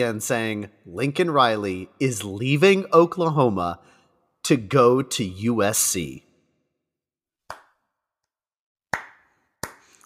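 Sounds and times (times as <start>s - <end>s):
speech: 0.0s - 6.3s
sharp hand claps: 7.4s - 7.9s, 8.9s - 10.0s.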